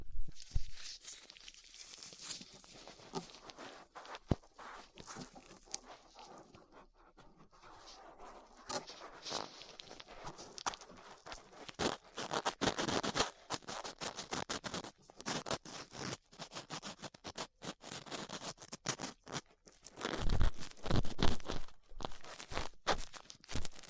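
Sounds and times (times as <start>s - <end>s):
ear cleaning with latex gloves, dental pick and cotton swabs: 0.3s - 23.8s.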